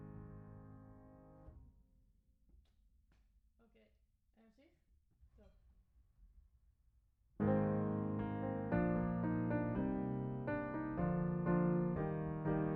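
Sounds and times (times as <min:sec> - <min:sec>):
piano: 0:00.0 - 0:01.7, 0:07.4 - 0:12.7.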